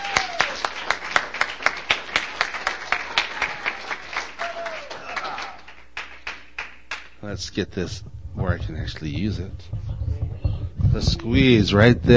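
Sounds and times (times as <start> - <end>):
audience applause at a poetry night: 0.0 - 7.2
speech: 7.2 - 9.8, 10.9 - 12.1.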